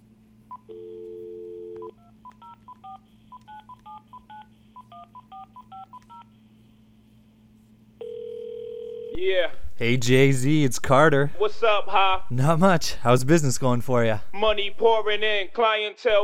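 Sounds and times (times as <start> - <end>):
phone line tone: 0.5 - 6.3, 8.0 - 9.2
speech: 9.2 - 16.2.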